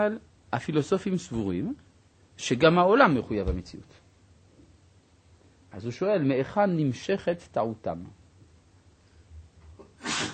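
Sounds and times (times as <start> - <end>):
speech: 0.0 - 4.0, 5.7 - 8.2
sneeze: 9.8 - 10.3.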